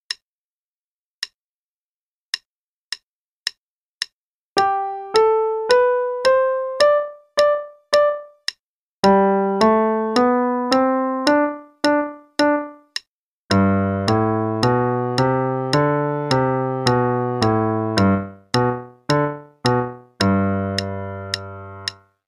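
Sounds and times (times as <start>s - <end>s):
musical warm-up exercise in G: 4.6s - 22.1s.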